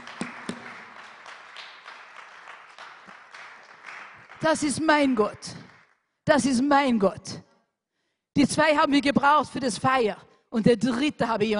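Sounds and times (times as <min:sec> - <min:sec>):
audience clapping: 0:00.0 - 0:06.0
speech: 0:04.4 - 0:05.6, 0:06.3 - 0:07.4, 0:08.5 - 0:11.5.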